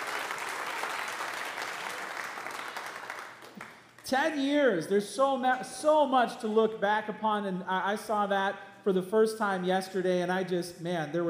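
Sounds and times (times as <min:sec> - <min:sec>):
audience applause: 0:00.0 - 0:04.0
speech: 0:04.1 - 0:11.2.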